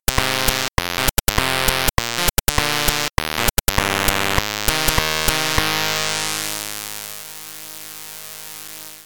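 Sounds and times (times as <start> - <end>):
1-bit ragtime music: 0.0 - 5.7.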